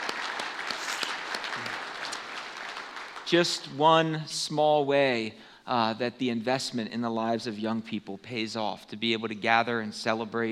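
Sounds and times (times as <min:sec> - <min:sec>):
audience applauding: 0:00.0 - 0:03.8
speech: 0:03.3 - 0:10.4.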